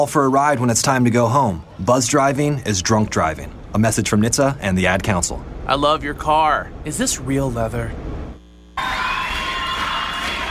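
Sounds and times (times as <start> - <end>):
speech: 0.0 - 8.1
live concert crowd cheering: 8.8 - 10.5.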